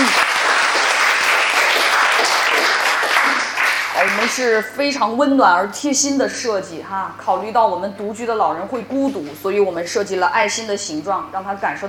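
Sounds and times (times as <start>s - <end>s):
audience applause: 0.0s - 4.6s
speech: 4.3s - 11.8s.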